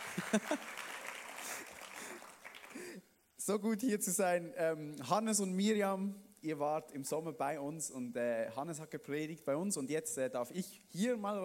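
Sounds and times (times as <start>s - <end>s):
laughter: 0.0s - 2.2s
audience applause: 0.0s - 3.0s
speech: 0.3s - 0.7s, 3.5s - 11.4s.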